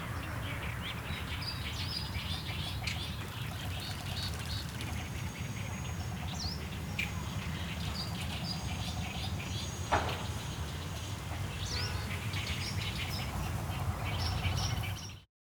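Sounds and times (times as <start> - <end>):
birds in Dali China: 0.0 - 15.3.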